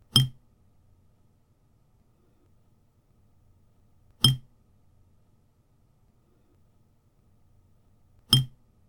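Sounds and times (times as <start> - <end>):
water drops on a plate: 0.2 - 0.4, 4.2 - 4.5, 8.4 - 8.6.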